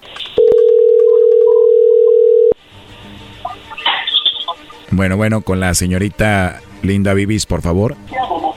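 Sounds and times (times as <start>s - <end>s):
telephone dial tone while dialing a call: 0.4s - 2.6s
speech: 4.9s - 8.4s.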